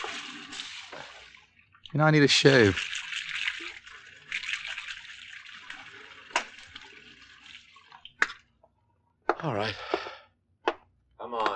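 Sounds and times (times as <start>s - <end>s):
running tap water while washing hands: 0.0s - 8.5s
speech: 1.9s - 3.0s, 9.4s - 10.0s.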